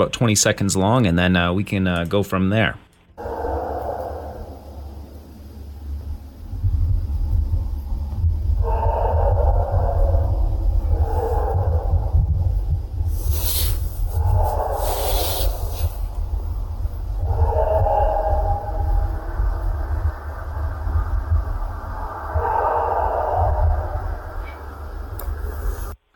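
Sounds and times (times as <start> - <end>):
speech: 0.0 - 3.3
recorded howl of an unidentified animal: 3.2 - 6.1, 7.3 - 13.5, 14.1 - 26.0.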